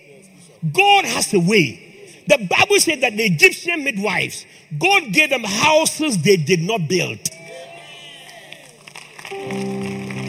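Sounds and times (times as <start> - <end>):
speech: 0.6 - 7.3
audience applauding: 8.2 - 10.2
sustained musical tones: 9.3 - 10.2.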